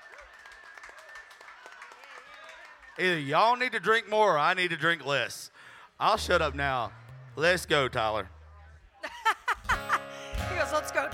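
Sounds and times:
audience applause: 0.0s - 3.0s
speech: 3.0s - 8.4s
laughter: 8.8s - 10.3s.

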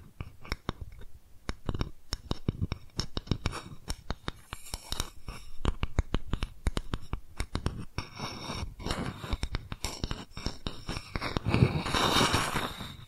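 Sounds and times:
rapid crisp taps and scratches: 0.0s - 13.0s
bright rustling scrape: 8.1s - 13.0s.

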